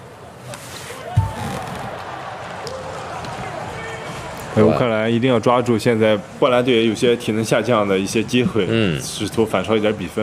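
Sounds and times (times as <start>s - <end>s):
crowd noise at a Poland versus Ukraine volleyball match: 0.0s - 10.2s
volleyball serve thud in a Poland versus Ukraine match: 1.2s - 2.0s
speech: 4.6s - 10.2s.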